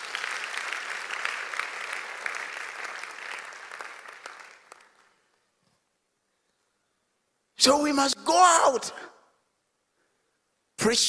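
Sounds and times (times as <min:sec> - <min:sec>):
audience clapping: 0:00.0 - 0:05.4
speech: 0:07.6 - 0:09.1, 0:10.8 - 0:11.0.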